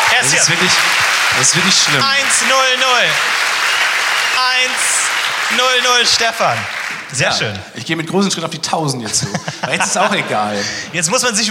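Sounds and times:
applause: 0.0 - 7.5
speech: 0.2 - 3.7, 4.4 - 4.9, 5.5 - 11.4
laughter: 9.0 - 11.4.

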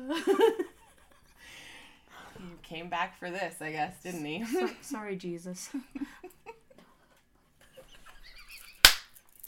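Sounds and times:
speech: 0.1 - 0.7, 2.7 - 6.4
loud hand clap: 8.8 - 9.2.

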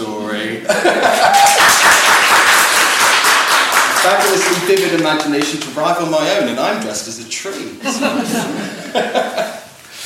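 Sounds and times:
laughter: 0.6 - 1.6, 7.8 - 9.7
audience applause: 1.1 - 5.8
speech: 4.5 - 9.6.

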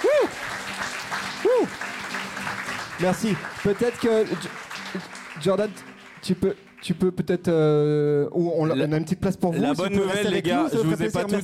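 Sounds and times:
audience applauding loudly: 0.0 - 7.0
speech: 3.0 - 11.4.

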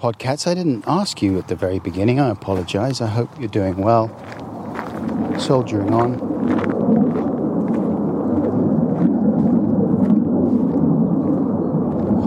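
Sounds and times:
speech: 0.0 - 4.5, 5.4 - 6.7
jet planes passing overhead: 0.0 - 12.2.

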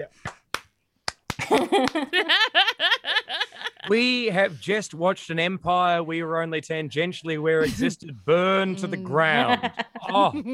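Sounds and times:
speech: 0.0 - 0.3, 1.5 - 10.5
slow clap: 0.1 - 2.2
laughter: 1.4 - 4.2, 7.6 - 8.0, 9.1 - 10.5.

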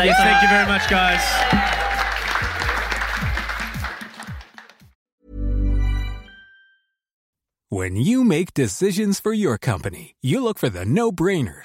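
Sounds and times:
speech: 0.0 - 1.8, 7.7 - 11.6
live audience clapping and whooping: 0.0 - 4.9.

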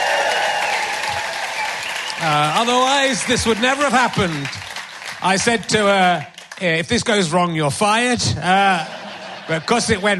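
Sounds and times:
audience applause: 0.0 - 6.5
speech: 2.2 - 4.6, 5.2 - 10.1
laughter: 8.5 - 10.1.

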